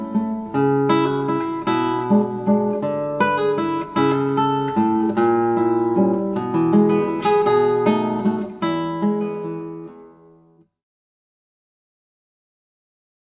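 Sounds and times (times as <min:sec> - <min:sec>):
guitar waltz: 0:00.0 - 0:10.7.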